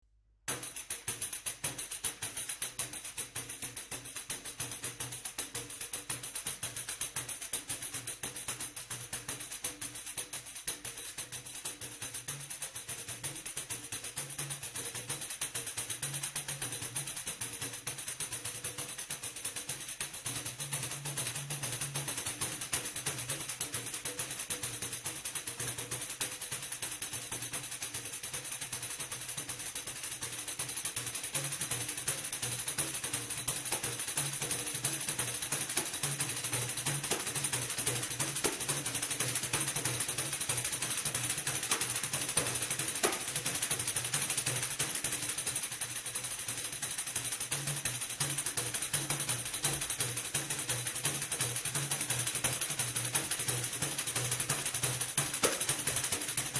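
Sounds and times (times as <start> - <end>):
pandeiro: 0.5 - 56.5.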